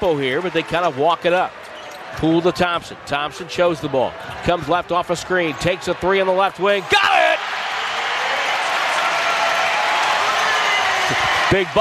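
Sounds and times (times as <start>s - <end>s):
arena crowd cheering: 0.0s - 1.6s, 4.9s - 11.7s
speech: 0.0s - 7.1s, 11.1s - 11.7s.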